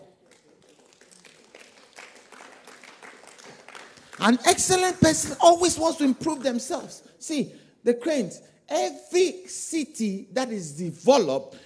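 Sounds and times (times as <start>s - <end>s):
audience clapping: 0.0s - 5.0s
speech: 4.2s - 11.6s.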